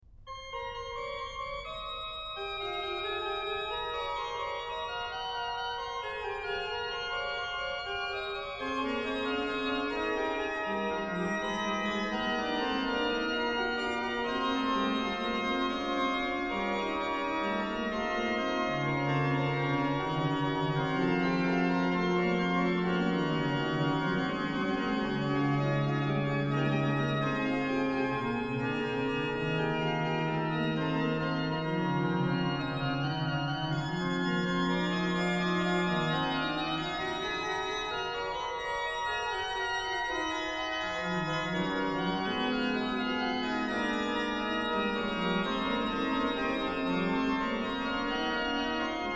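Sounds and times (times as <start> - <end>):
organ playing chorale preludes: 0.3 - 49.1.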